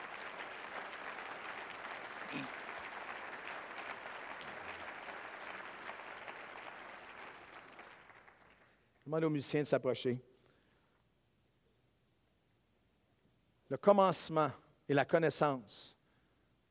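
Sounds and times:
audience applause: 0.0s - 8.8s
speech: 9.1s - 10.3s, 13.8s - 16.0s.

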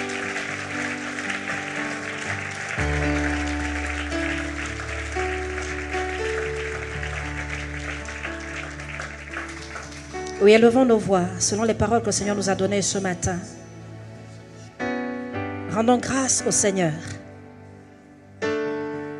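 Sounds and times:
congregation at a French-language church service applauding to acclaim the Lord: 0.0s - 10.9s
sustained keyboard chords: 0.0s - 19.1s
speech: 10.4s - 13.6s, 15.8s - 17.2s.

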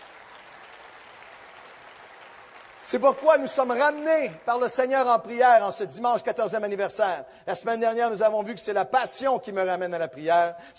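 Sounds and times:
church congregation applause during a Sunday service: 0.0s - 5.7s
speech: 2.9s - 10.7s.

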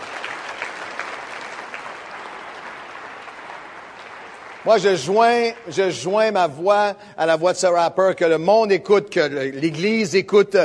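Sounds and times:
audience applause: 0.0s - 5.9s
speech: 4.6s - 10.6s.

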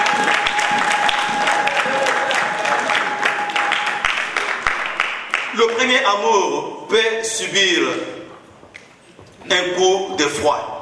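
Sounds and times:
audience applause: 0.0s - 5.8s
speech: 6.0s - 8.1s, 9.5s - 10.7s.

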